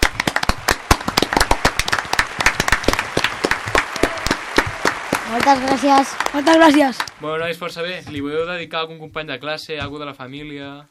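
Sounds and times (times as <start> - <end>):
audience applause: 0.0 - 8.0
speech: 5.5 - 10.9.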